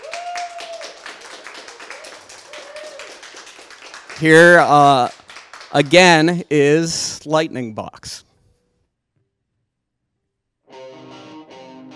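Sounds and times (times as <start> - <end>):
audience applause: 0.0 - 6.4
speech: 4.2 - 8.2.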